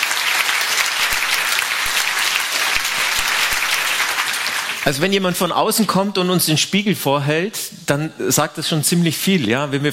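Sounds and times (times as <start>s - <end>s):
audience applause: 0.0s - 5.6s
speech: 4.8s - 9.9s.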